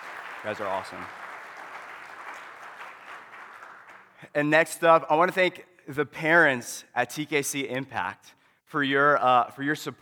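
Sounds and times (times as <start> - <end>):
church congregation applause honoring its pastors and leaders: 0.0 - 4.2
speech: 0.4 - 1.2, 4.2 - 10.0.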